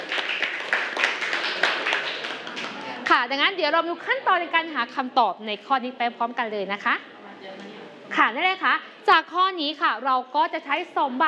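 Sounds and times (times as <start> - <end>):
clapping for the last student: 0.0 - 3.3
speech: 3.2 - 11.2.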